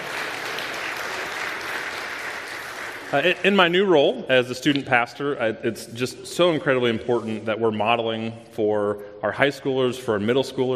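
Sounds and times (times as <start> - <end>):
audience round of applause: 0.0 - 3.5
speech: 3.1 - 10.7.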